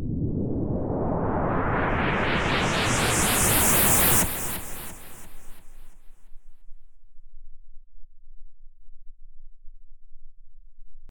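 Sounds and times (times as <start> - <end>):
delayed pink noise: 0.2 - 5.8.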